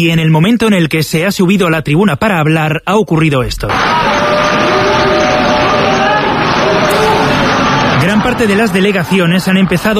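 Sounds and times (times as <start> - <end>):
speech: 0.0 - 4.5, 8.1 - 9.9
applause of delegations: 3.7 - 9.9
protests in assembly hall: 3.7 - 9.9.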